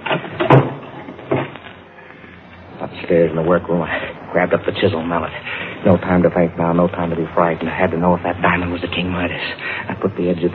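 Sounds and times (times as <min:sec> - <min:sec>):
closet door closing with a thud: 0:00.0 - 0:01.6
door scraping: 0:00.0 - 0:02.9
speech: 0:03.1 - 0:10.5.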